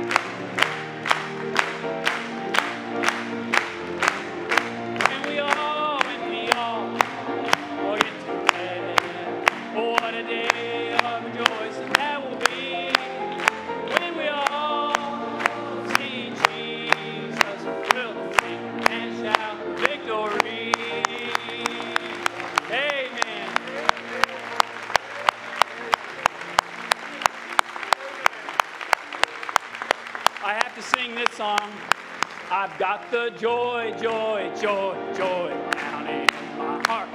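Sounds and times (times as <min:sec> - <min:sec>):
audience clapping and applauding: 0:00.0 - 0:33.4, 0:34.0 - 0:37.1
speech: 0:33.1 - 0:35.4.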